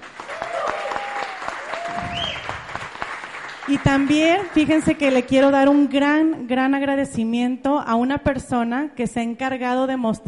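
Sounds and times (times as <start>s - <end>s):
audience applause: 0.0s - 5.8s
speech: 3.7s - 10.2s.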